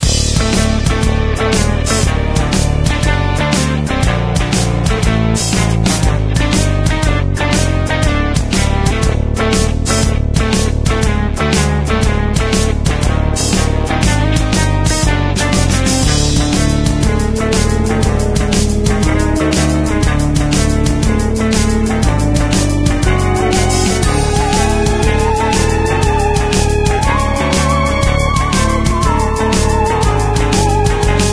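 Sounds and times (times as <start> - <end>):
Halloween background music: 0.0 - 31.3.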